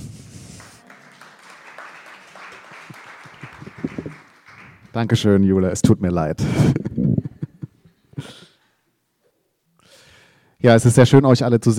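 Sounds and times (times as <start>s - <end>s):
audience clapping after a reading: 0.0s - 5.6s
speech: 5.0s - 6.9s, 10.6s - 11.7s.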